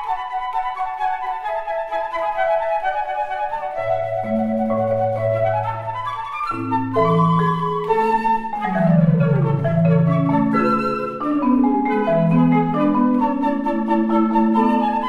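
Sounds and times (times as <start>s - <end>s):
flutes playing allegro: 0.0s - 15.0s
marimba playing allegro: 3.5s - 15.0s.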